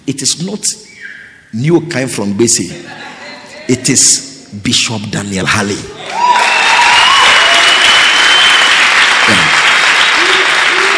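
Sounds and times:
speech: 0:00.1 - 0:06.2
laughter: 0:02.7 - 0:03.8
crowd applause at a church meeting: 0:05.9 - 0:10.9.

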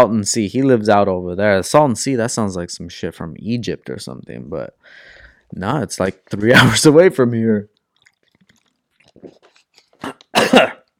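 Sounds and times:
speech: 0:00.0 - 0:07.7, 0:10.0 - 0:10.7
person coughing after something went down the wrong pipe: 0:10.0 - 0:10.9.

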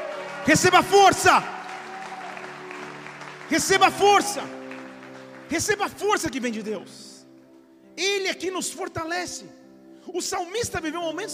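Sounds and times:
audience applause: 0:00.0 - 0:06.1
speech: 0:00.4 - 0:01.6, 0:03.5 - 0:04.6, 0:05.5 - 0:07.1, 0:08.0 - 0:11.3.

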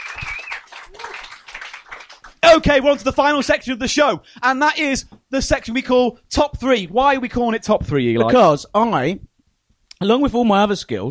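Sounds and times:
person whooping: 0:00.0 - 0:01.4
audience applause: 0:00.0 - 0:03.0
speech: 0:02.4 - 0:09.3, 0:10.0 - 0:11.1.

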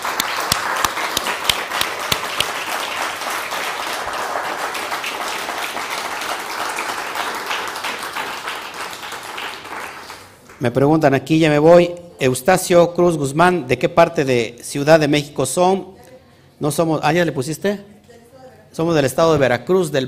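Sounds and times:
audience applauding: 0:00.0 - 0:10.6
speech: 0:10.6 - 0:15.9, 0:16.6 - 0:17.9, 0:18.8 - 0:20.0.

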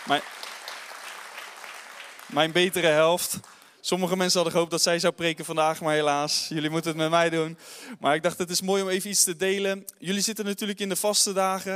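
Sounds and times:
crowd applauding: 0:00.0 - 0:03.8
speech: 0:00.1 - 0:00.5, 0:02.3 - 0:11.7.

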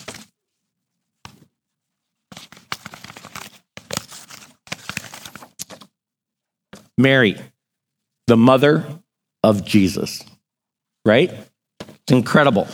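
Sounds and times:
paper envelope being torn open at an awards announcement: 0:02.3 - 0:05.9
speech: 0:07.0 - 0:07.5, 0:08.3 - 0:10.3, 0:11.0 - 0:11.5, 0:12.1 - 0:12.7.

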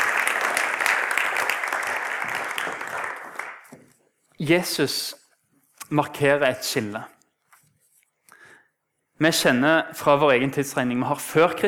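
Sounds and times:
audience applauding: 0:00.0 - 0:04.0
speech: 0:04.4 - 0:05.2, 0:05.9 - 0:07.2, 0:09.2 - 0:11.6.

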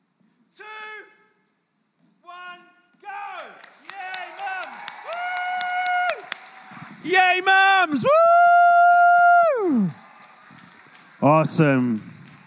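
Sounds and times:
audience cheering and applauding: 0:03.3 - 0:12.4
speech: 0:07.0 - 0:08.6, 0:11.2 - 0:12.1.

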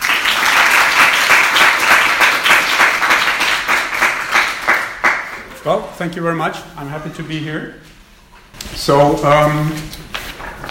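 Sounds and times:
audience applause welcoming a speaker on EU climate policy: 0:00.0 - 0:05.5
speech: 0:05.6 - 0:08.0, 0:08.6 - 0:10.0.

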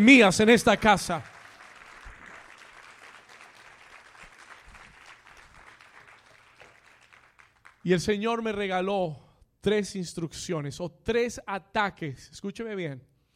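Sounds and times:
speech: 0:00.0 - 0:01.3, 0:07.8 - 0:13.1
audience applause: 0:00.0 - 0:07.8.

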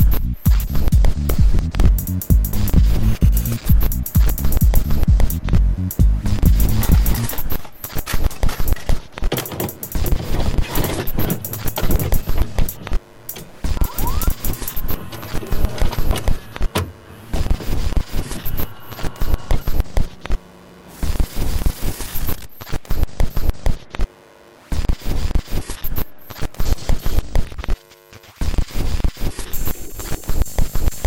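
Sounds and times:
hiss and rattling: 0:00.0 - 0:23.8, 0:28.4 - 0:31.0
VCR motor hum: 0:03.0 - 0:31.0
VCR clicking and whirring: 0:06.3 - 0:20.6.

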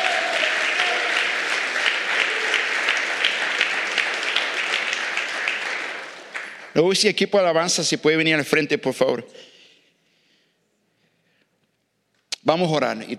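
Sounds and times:
loud audience applause: 0:00.0 - 0:07.0
speech: 0:06.8 - 0:09.5, 0:12.5 - 0:13.1.

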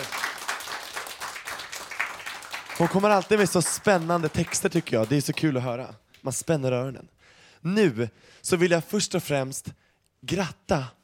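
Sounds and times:
audience applause: 0:00.0 - 0:05.5
speech: 0:02.8 - 0:11.0.

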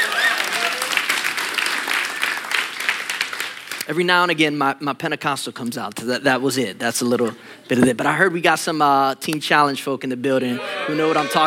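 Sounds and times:
audience applause during a church service: 0:00.0 - 0:03.8
speech: 0:03.9 - 0:11.4.

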